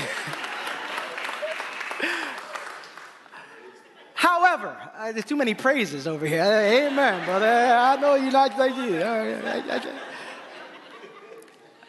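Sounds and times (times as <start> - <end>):
audience clapping: 0.0 - 3.6, 6.5 - 9.9
laughter: 0.0 - 4.8, 6.3 - 11.8
speech: 4.6 - 10.1.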